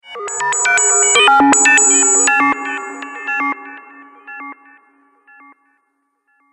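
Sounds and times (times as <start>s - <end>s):
science fiction alien contact data bleeps: 0.2s - 4.6s.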